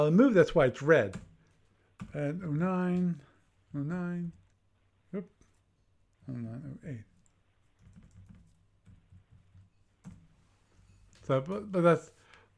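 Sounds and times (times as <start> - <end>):
speech: 0.0 - 1.3, 2.1 - 4.4, 5.1 - 5.4, 6.3 - 7.1, 11.3 - 12.2
computer keyboard typing orders in a game: 7.8 - 10.2.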